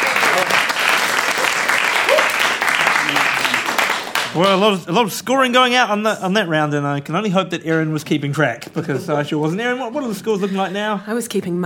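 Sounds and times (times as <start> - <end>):
audience round of applause: 0.0 - 4.9
speech: 4.4 - 11.6.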